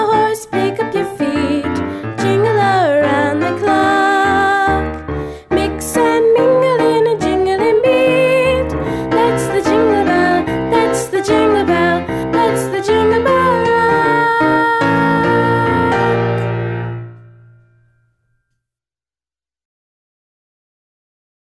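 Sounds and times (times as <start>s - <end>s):
person singing a Christmas pop song: 0.0s - 16.4s.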